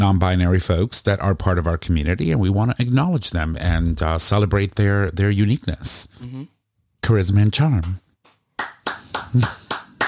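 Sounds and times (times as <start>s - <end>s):
speech: 0.0s - 8.0s, 9.3s - 9.6s
woman clapping: 8.3s - 10.0s.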